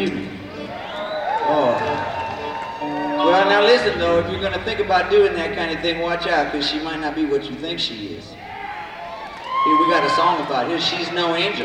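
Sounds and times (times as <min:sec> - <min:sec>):
live crowd in New York City: 0:00.0 - 0:11.6
instruments tuning at a live show in New York City: 0:01.7 - 0:09.6.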